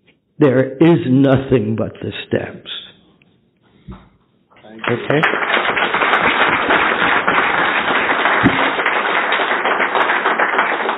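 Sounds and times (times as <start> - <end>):
speech: 0.4 - 2.8, 4.9 - 5.6
audience applause: 4.7 - 10.9.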